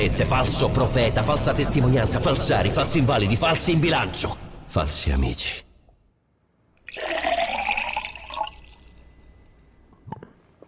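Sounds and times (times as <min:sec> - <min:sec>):
speech: 0:00.1 - 0:05.6
loud rush of pouring water: 0:06.8 - 0:09.1.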